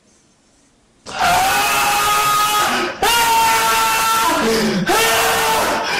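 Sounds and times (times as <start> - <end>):
cat screaming: 1.1 - 5.8.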